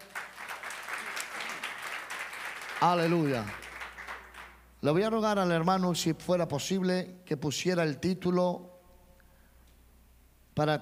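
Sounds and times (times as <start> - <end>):
audience applauding: 0.0 - 4.6
speech: 2.8 - 3.6, 4.8 - 8.7, 10.6 - 10.7.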